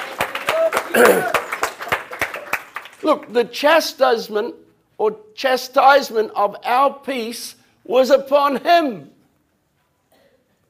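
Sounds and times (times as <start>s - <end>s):
congregation clapping during a church service: 0.0s - 3.4s
speech: 0.9s - 1.4s, 3.0s - 9.1s.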